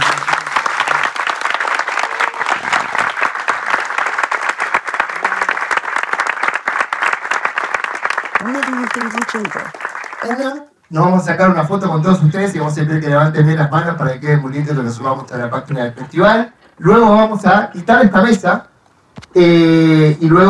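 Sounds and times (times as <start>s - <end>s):
audience applause: 0.0s - 10.7s
speech: 9.0s - 18.7s, 19.4s - 20.4s.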